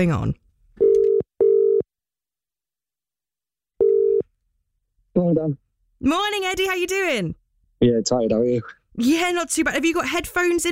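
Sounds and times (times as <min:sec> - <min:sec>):
speech: 0:00.0 - 0:00.4, 0:05.2 - 0:10.7
telephone line tones while a call is placed: 0:00.8 - 0:01.8, 0:03.8 - 0:04.2.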